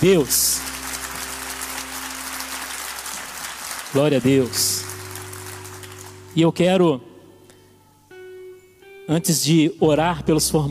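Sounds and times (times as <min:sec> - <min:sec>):
speech: 0:00.0 - 0:00.6, 0:03.9 - 0:04.8, 0:06.4 - 0:07.1, 0:09.1 - 0:10.6
audience applause: 0:00.0 - 0:06.2.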